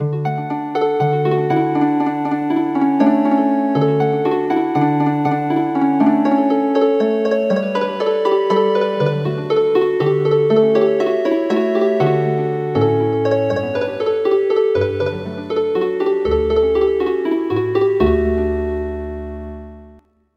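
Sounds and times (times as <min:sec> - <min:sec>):
healing harp: 0:00.0 - 0:20.0.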